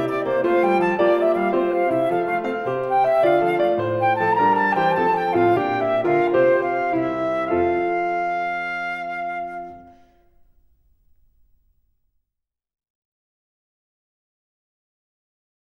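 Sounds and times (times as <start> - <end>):
flute performance: 0.0 - 10.4.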